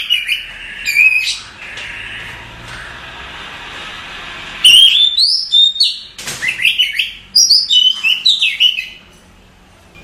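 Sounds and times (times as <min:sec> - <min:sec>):
Oriental magpie-robin song: 0:00.0 - 0:02.4, 0:04.6 - 0:09.0.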